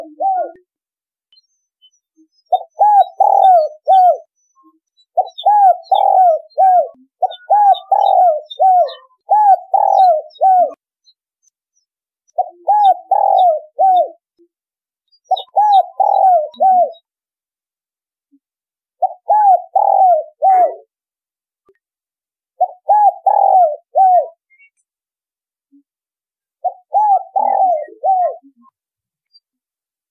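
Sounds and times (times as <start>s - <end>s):
spotted dove cooing: 0.0s - 0.6s, 2.5s - 4.3s, 5.2s - 10.8s, 12.4s - 14.2s, 15.3s - 17.0s, 19.0s - 20.9s, 22.6s - 24.4s, 26.6s - 28.7s.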